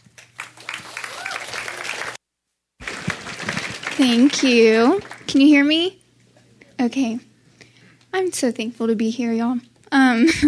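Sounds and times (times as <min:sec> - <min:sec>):
church audience applause welcoming a speaker: 0:00.0 - 0:02.2, 0:02.8 - 0:05.5
speech: 0:04.0 - 0:06.0, 0:06.8 - 0:07.3, 0:08.1 - 0:10.4.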